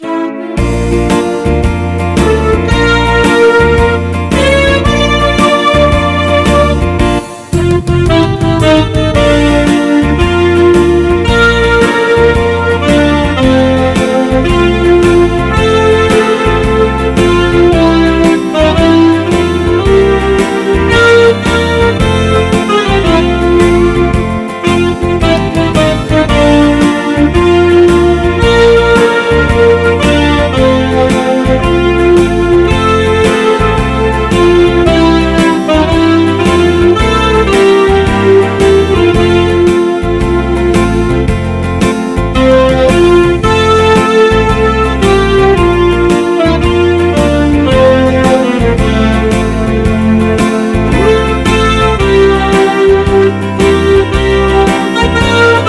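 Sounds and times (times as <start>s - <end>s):
saxophone medley: 0.0s - 55.6s.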